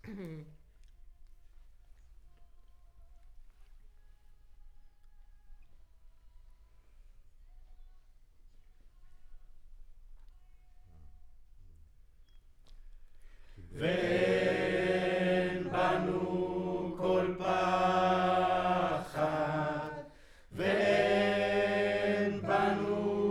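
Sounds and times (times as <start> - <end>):
choir recorded with center U47 microphone: 13.7 - 23.2.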